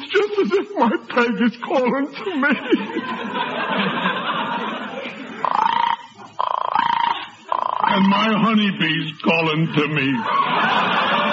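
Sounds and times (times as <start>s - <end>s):
laughter: 0.0s - 6.4s, 9.8s - 11.3s
murmuring sound: 0.0s - 11.3s
speech: 0.5s - 4.3s, 7.9s - 10.9s
female frog calling to her mate: 5.4s - 8.8s.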